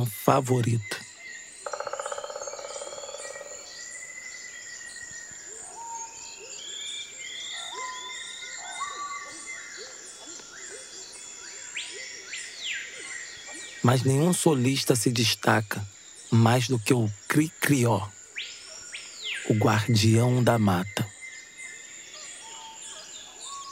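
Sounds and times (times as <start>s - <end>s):
speech: 0.0s - 1.0s, 13.9s - 18.2s, 19.5s - 21.0s
red-crested woodpecker pecking tree trunk: 1.7s - 3.2s.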